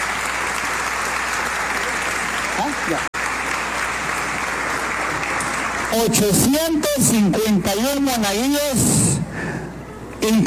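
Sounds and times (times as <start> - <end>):
audience applause: 0.0 - 6.8
speech: 2.9 - 3.1, 5.9 - 9.1, 10.2 - 10.4.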